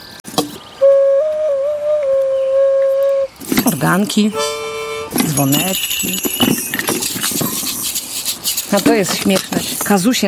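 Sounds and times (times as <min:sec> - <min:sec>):
ocarina playing: 0:00.8 - 0:06.2
speech: 0:03.8 - 0:04.6, 0:05.2 - 0:06.6, 0:08.7 - 0:10.2.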